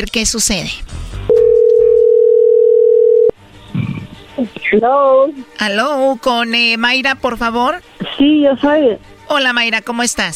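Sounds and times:
speech: 0.0s - 1.0s, 4.4s - 10.3s
telephone dialing tone: 1.3s - 3.3s.

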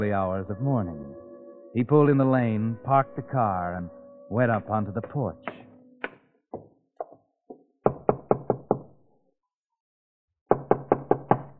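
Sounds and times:
speech: 0.0s - 5.6s
knocking on a wooden farmhouse door: 7.8s - 8.9s, 10.5s - 11.5s.

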